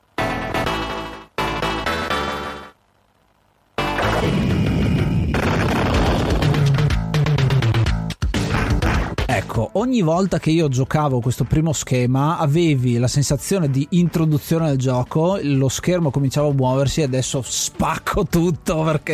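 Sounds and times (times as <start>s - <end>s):
arcade-game lightning strike crackling electronic bursts: 0.0s - 7.8s, 9.1s - 19.1s
speech: 9.7s - 19.1s.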